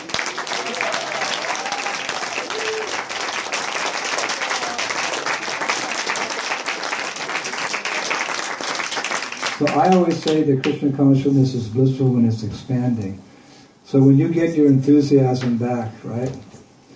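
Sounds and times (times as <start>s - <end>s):
audience applause: 0.0s - 10.8s
speech: 9.6s - 13.3s, 13.9s - 16.5s.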